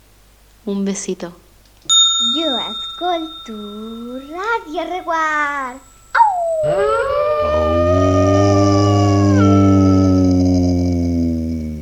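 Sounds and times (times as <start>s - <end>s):
speech: 0.6s - 1.4s, 2.4s - 5.9s, 6.6s - 8.2s
wolf howling in a jingle: 6.2s - 11.8s.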